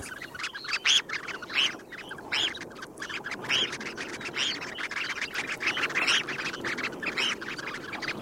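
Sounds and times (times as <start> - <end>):
red phalarope calls: 0.0 - 8.2.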